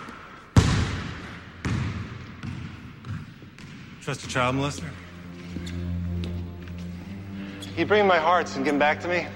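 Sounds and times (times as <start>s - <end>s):
basketball bouncing and being shot: 0.6s - 4.5s
speech: 4.0s - 5.0s, 7.8s - 9.3s.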